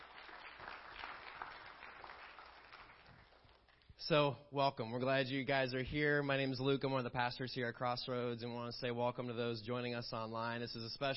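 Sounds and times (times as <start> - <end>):
large audience applauding together: 0.0 - 3.8
speech: 4.0 - 11.1.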